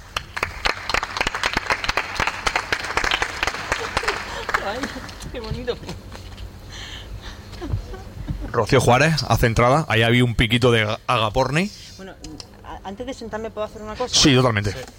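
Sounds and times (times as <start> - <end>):
audience applause: 0.0 - 5.2
laughter: 3.2 - 5.3, 7.2 - 8.7
speech: 4.6 - 6.2, 8.5 - 14.9.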